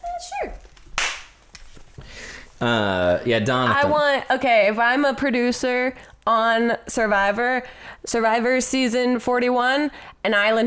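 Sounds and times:
hand clap: 1.0 - 1.6
speech: 2.6 - 10.6.

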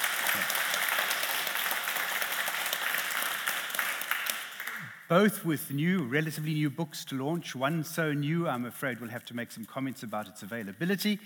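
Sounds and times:
audience applause welcoming two authors at a talk: 0.0 - 5.0
speech: 5.1 - 11.2.

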